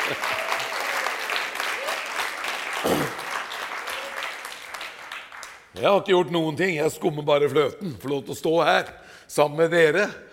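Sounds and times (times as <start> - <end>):
audience applause: 0.0 - 5.7
speech: 0.1 - 0.4, 5.8 - 10.3.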